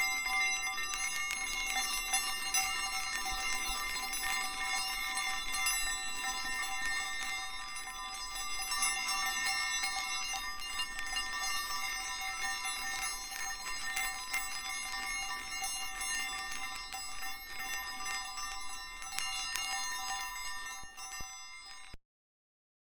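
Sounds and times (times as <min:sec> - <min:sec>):
Chinese yinyang balls chiming: 0:00.0 - 0:22.0.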